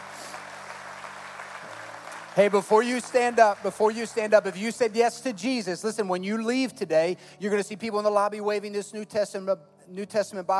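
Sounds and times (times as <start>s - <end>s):
audience applause: 0.0s - 5.0s
speech: 2.4s - 10.5s.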